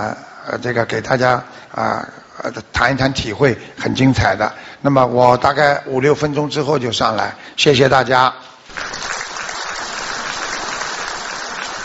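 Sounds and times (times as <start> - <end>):
speech: 0.0 - 9.1
audience applause: 8.7 - 11.8.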